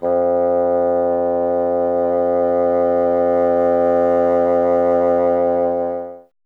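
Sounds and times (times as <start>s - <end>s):
bassoon playing F: 0.0s - 6.3s.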